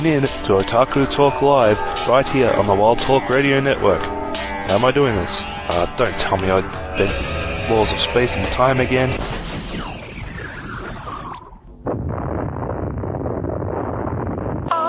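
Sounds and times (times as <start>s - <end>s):
speech: 0.0s - 9.4s
synthesized roaring noise burst of a magic missile spell: 3.2s - 14.7s
warbling electronic tones of a magic missile spell: 3.5s - 12.4s
synthesized descending whoosh of a magic missile spell: 4.0s - 14.7s.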